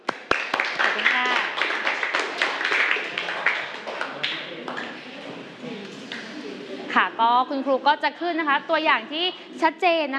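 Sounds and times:
classroom clapping: 0.0s - 5.0s
speech: 7.2s - 10.1s.

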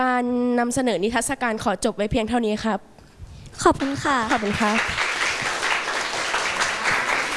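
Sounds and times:
speech: 0.0s - 2.9s, 3.6s - 5.0s
audience applause: 4.3s - 7.3s.

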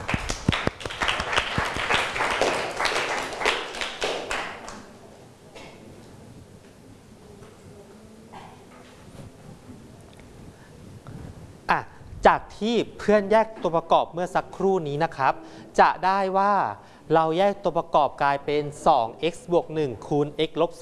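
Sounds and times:
students clapping for a classmate: 0.0s - 4.9s
speech: 12.6s - 20.8s.

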